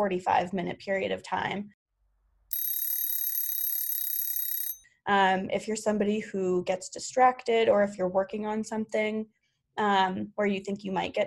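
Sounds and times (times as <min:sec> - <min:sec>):
speech: 0:00.0 - 0:01.8, 0:05.1 - 0:11.2
Pomodoro timer alarm ringing: 0:02.5 - 0:04.9.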